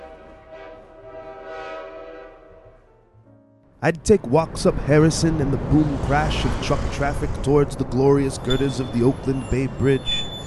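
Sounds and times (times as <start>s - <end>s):
distant train engine horn: 0.0s - 3.1s
speech: 3.8s - 10.4s.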